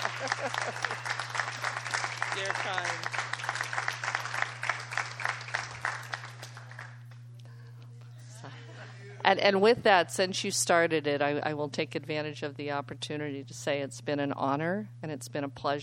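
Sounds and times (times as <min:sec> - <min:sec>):
laughter: 0:00.0 - 0:01.6, 0:08.2 - 0:09.3
crowd applauding in a standing ovation: 0:00.0 - 0:07.1
low steady hum: 0:00.0 - 0:15.8
speech: 0:00.2 - 0:01.4, 0:02.4 - 0:03.9, 0:09.3 - 0:15.8.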